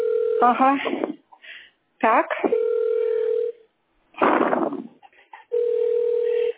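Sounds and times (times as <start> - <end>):
telephone ringing: 0.0 - 1.1, 2.5 - 3.6, 5.5 - 6.5
speech: 0.4 - 1.1, 2.0 - 2.7.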